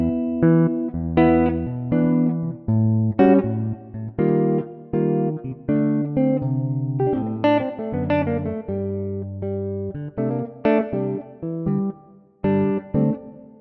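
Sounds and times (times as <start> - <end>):
electric guitar playing G: 0.0 - 13.5.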